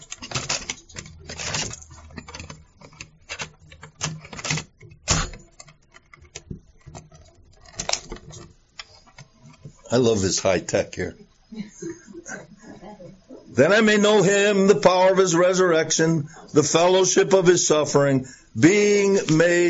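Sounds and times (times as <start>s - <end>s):
cassette tape being turned over in a recorder: 0.0s - 10.2s
speech: 9.9s - 11.3s, 13.6s - 19.6s.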